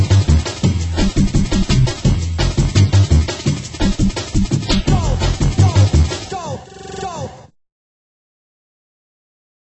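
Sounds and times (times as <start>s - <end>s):
drum and bass mix: 0.0s - 7.5s.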